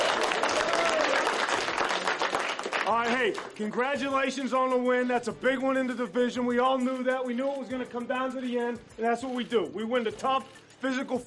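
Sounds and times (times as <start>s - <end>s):
football team applauding in the locker room after a divisional win: 0.0s - 4.0s
speech: 2.9s - 11.2s.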